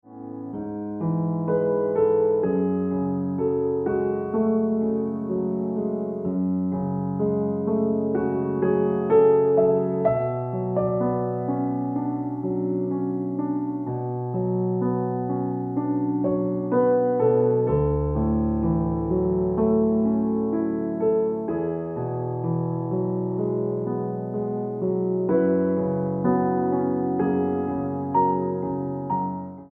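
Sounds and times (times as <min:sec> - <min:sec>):
piano ringtone music: 0:00.1 - 0:29.7.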